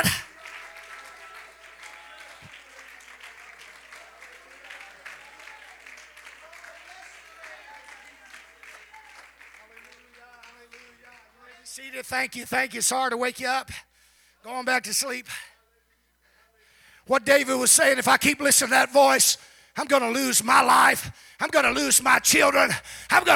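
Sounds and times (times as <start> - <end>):
audience clapping hands: 0.0 - 12.1, 21.4 - 23.3
speech: 11.8 - 13.8, 14.5 - 15.4, 17.1 - 23.3.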